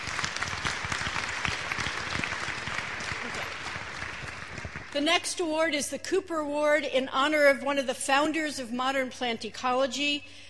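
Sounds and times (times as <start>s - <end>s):
audience applause: 0.0s - 5.0s
speech: 5.0s - 10.4s.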